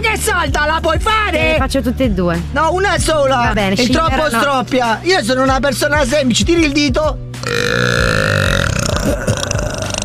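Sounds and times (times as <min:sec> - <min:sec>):
speech: 0:00.2 - 0:08.3
loud burp: 0:07.4 - 0:10.0.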